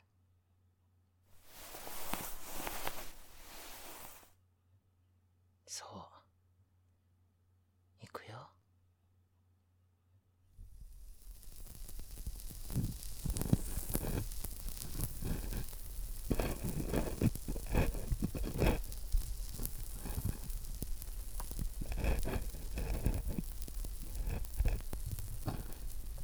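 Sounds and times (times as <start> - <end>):
carbonated ear cleaning on the right: 1.4 - 4.3, 10.8 - 26.2.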